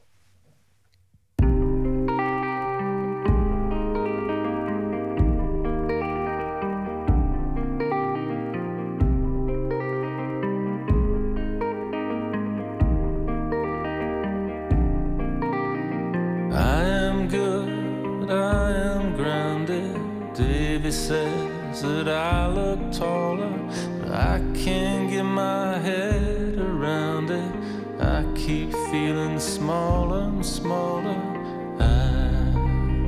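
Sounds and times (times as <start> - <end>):
effects-laden guitar repeating a steady chord pattern: 1.4 - 33.0
indie rock song instrumental opening: 1.4 - 33.0.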